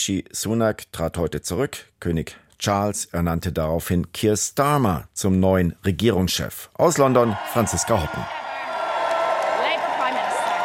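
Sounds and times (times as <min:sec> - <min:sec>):
speech: 0:00.0 - 0:08.4
crowd cheering outside 10 Downing Street in London: 0:07.0 - 0:10.6.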